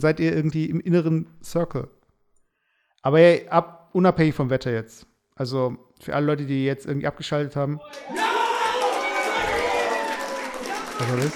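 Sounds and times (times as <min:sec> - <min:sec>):
speech: 0:00.0 - 0:02.0, 0:03.0 - 0:08.3, 0:11.0 - 0:11.3
played applause sound effect: 0:07.9 - 0:11.3.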